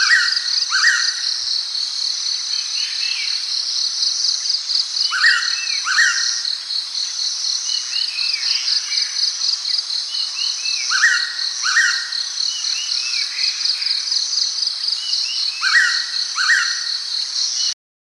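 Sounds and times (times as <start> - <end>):
Moluccan pitta calling with clear slurred whistles: 0.0 - 1.3, 5.1 - 6.5, 10.8 - 13.3.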